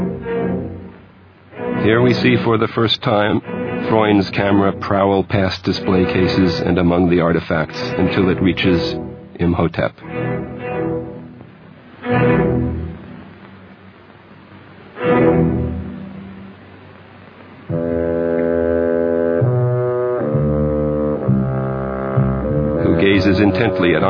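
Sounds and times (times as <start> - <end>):
deep mournful bassoon tones: 0.0 - 1.0, 1.6 - 13.3, 17.7 - 24.0
speech: 1.8 - 10.3, 23.7 - 24.0.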